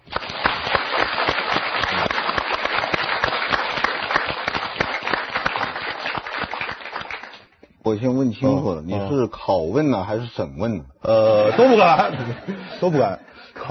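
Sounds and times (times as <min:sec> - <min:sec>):
audience applause: 0:00.0 - 0:07.5
speech: 0:07.9 - 0:13.7
laughter: 0:11.2 - 0:13.7.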